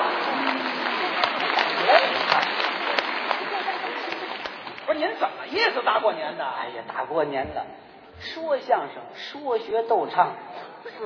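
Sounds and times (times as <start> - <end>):
audience applause: 0.0 - 5.8
speech: 5.9 - 11.0.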